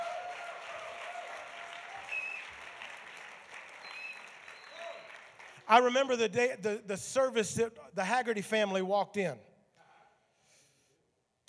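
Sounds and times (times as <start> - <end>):
audience hand clap of praise: 0.0 - 6.0
speech: 5.7 - 9.5.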